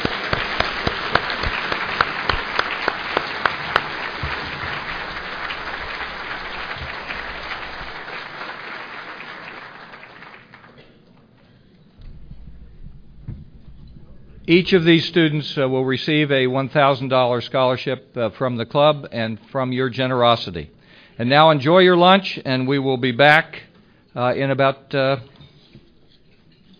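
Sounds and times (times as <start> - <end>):
enthusiastic audience applause: 0.0 - 11.0
speech: 14.5 - 25.3.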